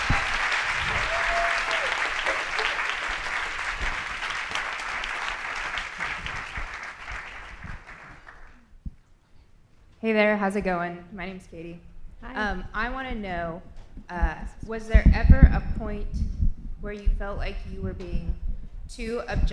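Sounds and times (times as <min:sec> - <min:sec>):
audience applause: 0:00.0 - 0:08.7
speech: 0:10.1 - 0:19.5.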